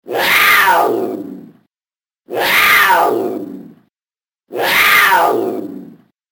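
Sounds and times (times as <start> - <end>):
wildcat: 0.0 - 1.7, 2.3 - 3.9, 4.5 - 6.1.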